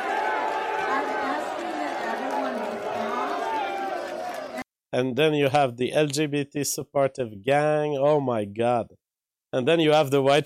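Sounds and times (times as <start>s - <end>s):
crowd booing: 0.0s - 4.6s
speech: 4.9s - 10.4s.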